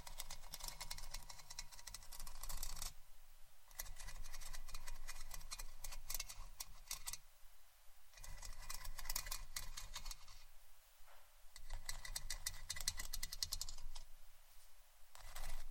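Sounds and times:
scratching and brushing in rasping strokes: 0.0s - 3.0s, 3.7s - 7.2s, 8.1s - 10.5s, 11.6s - 15.7s
low steady hum: 0.0s - 15.7s.

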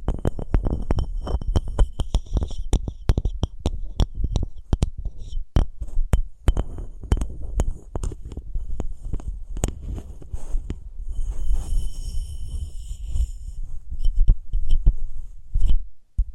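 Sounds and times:
taps and knocks on wood, cork, sponge, foam, glass and plastic objects: 0.0s - 10.1s
low rubbing rumble: 6.9s - 15.6s.

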